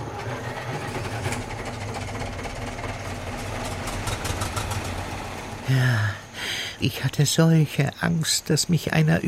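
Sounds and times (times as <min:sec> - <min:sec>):
tractor engines running: 0:00.0 - 0:07.6
speech: 0:05.7 - 0:06.2, 0:06.8 - 0:09.2.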